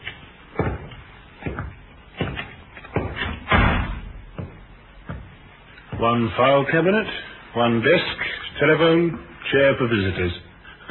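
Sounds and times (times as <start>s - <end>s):
door being tried and opened: 2.2s - 4.2s
speech: 6.0s - 10.8s.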